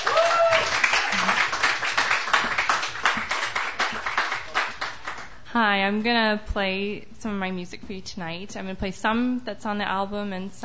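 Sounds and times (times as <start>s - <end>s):
audience applauding a performer at a Sunday night open mic: 0.0s - 5.4s
speech: 5.6s - 10.6s.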